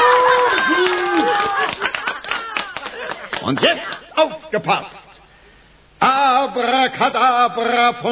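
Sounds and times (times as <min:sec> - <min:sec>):
crowd clapping: 0:00.0 - 0:04.1
speech: 0:03.5 - 0:05.0, 0:06.0 - 0:08.1.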